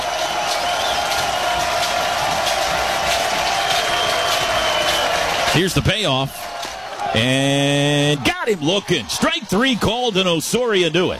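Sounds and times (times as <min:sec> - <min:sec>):
claps and whistles: 0:00.0 - 0:07.1
large baseball crowd cheering and shouting: 0:00.0 - 0:11.1
speech: 0:05.5 - 0:11.1.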